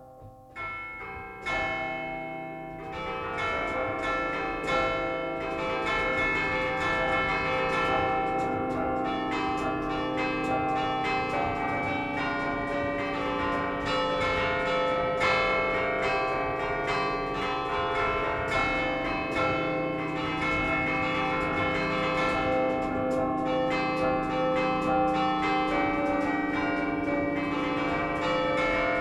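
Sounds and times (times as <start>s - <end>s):
San Cipriano church bells in Liguria Genova: 0.0s - 28.9s.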